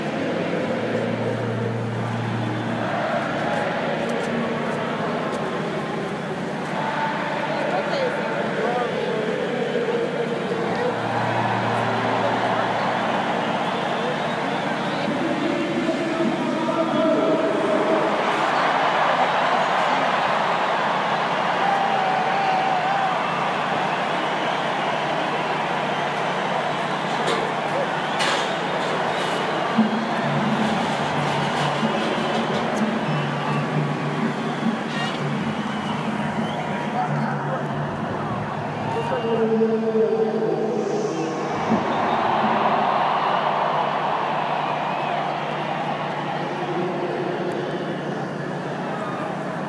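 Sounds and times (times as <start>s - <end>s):
concert music outside TCF Bank Stadium: 0.0s - 49.6s.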